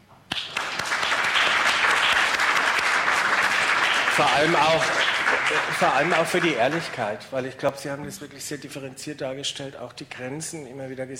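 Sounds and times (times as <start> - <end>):
applause for the panel: 0.3 - 7.2
speech: 4.2 - 11.1.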